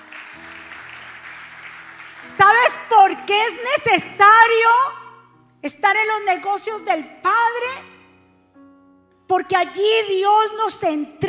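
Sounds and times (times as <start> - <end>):
loud applause: 0.0 - 3.2
speech: 2.3 - 5.0, 5.6 - 7.9, 9.3 - 11.2.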